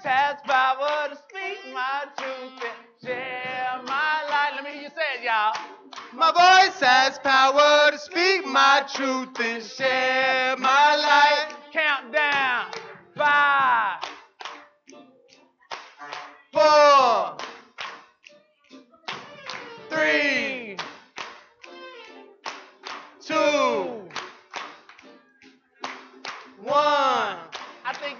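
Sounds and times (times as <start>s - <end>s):
audience clapping: 2.1s - 4.5s, 5.2s - 9.9s, 10.5s - 14.7s, 15.7s - 18.3s, 19.1s - 25.2s, 25.8s - 28.1s
speech: 6.3s - 11.5s.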